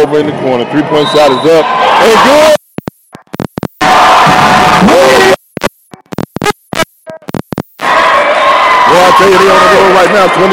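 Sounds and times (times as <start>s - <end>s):
basketball crowd roaring and cheering: 0.1s - 2.6s, 3.8s - 5.4s, 7.8s - 10.5s
speech: 0.1s - 2.6s, 9.2s - 10.5s
sharp choppy noises: 2.5s - 8.1s.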